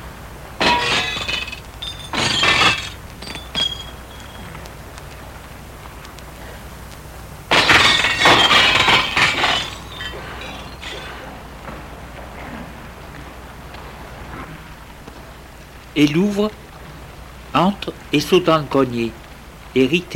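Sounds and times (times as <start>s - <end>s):
window pane shattering: 0.6s - 4.6s, 7.5s - 11.3s
speech: 16.0s - 16.6s, 17.6s - 20.1s.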